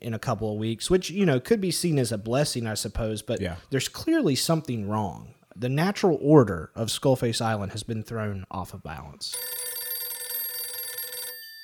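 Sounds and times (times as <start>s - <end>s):
speech: 0.0s - 9.6s
red telephone bell ringing: 9.3s - 11.6s.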